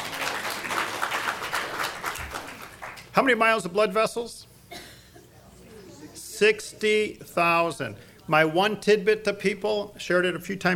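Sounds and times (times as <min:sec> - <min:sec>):
audience applause: 0:00.0 - 0:03.1
speech: 0:03.2 - 0:04.4, 0:06.4 - 0:10.7.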